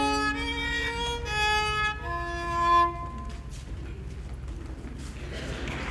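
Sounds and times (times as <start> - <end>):
violin: 0.0 - 3.7.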